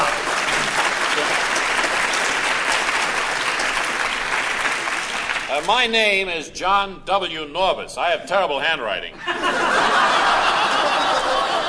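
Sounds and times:
audience applause welcoming a guest on stage: 0.0 - 5.7, 9.8 - 11.6
speech: 5.6 - 10.3
laughter: 9.2 - 11.6.

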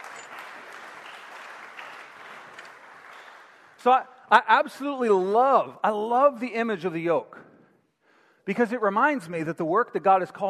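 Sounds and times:
audience applause: 0.0 - 3.8
speech: 3.8 - 7.4, 8.5 - 10.4.

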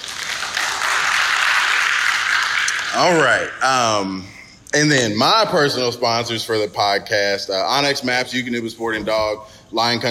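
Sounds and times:
crowd applause: 0.0 - 3.4
speech: 2.9 - 10.1.

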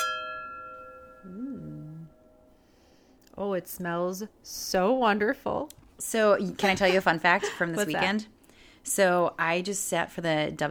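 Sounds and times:
wine glasses clinking in a toast: 0.0 - 1.4
speech: 1.2 - 1.5, 3.4 - 10.6
person humming: 1.2 - 2.2.

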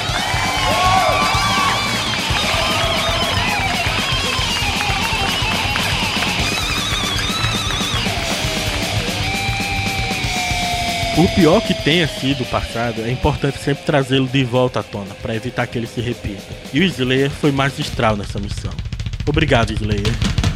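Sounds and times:
crowd cheering and applause: 0.0 - 13.2
speech: 11.2 - 20.4.

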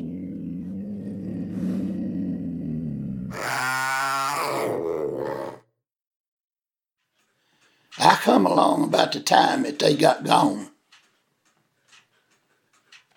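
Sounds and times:
panther growling and roaring: 0.0 - 5.7
speech: 8.2 - 10.7.

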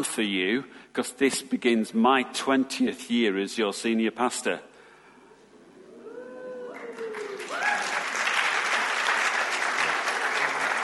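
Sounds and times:
speech: 0.0 - 4.7
audience applause: 6.7 - 10.8.

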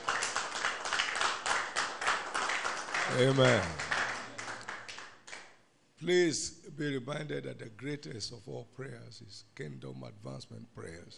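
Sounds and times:
crowd clapping: 0.0 - 5.6
speech: 3.1 - 3.8, 6.0 - 11.1.

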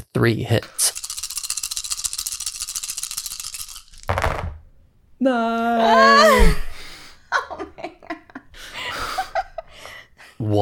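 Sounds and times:
speech: 0.2 - 0.9, 5.2 - 6.1, 10.4 - 10.6
six dice being rolled: 0.6 - 4.8.

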